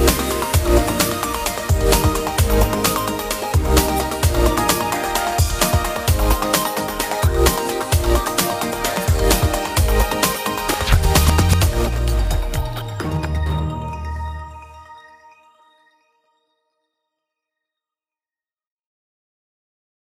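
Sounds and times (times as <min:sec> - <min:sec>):
instrumental music: 0:00.0 - 0:15.5.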